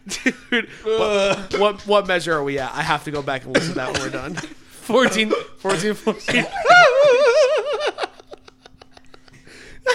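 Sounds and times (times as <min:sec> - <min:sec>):
person coughing: 0:00.1 - 0:01.8, 0:03.5 - 0:06.6
speech: 0:00.2 - 0:06.6
laughter: 0:03.7 - 0:09.9.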